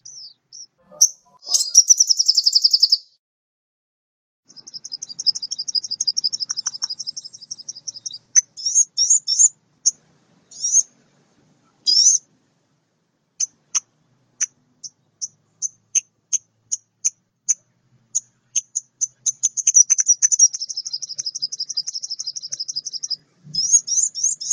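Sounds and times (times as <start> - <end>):
mixed birds singing high, thin repeated notes: 0.0 - 3.2, 4.5 - 10.9, 13.4 - 24.5.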